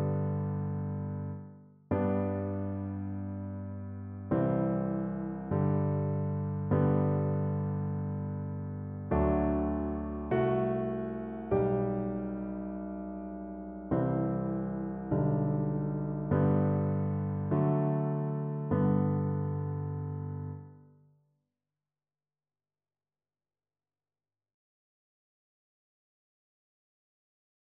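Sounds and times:
piano duet: 0.0s - 20.8s.

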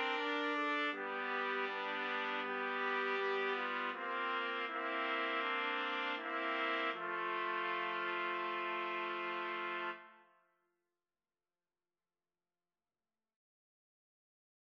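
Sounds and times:
trumpet trio playing: 0.0s - 10.2s.

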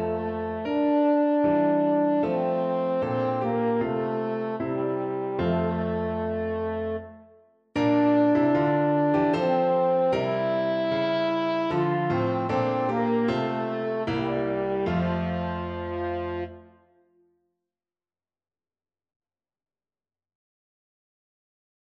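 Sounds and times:
French horn: 0.0s - 17.1s.

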